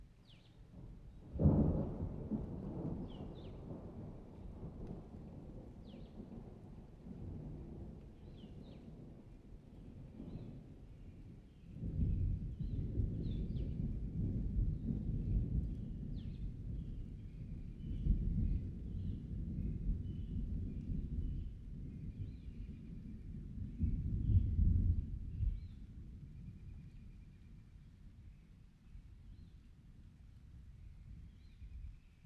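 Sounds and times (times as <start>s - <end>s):
summer rain: 0.0s - 32.2s
summer thunder: 1.3s - 9.2s, 11.8s - 26.6s.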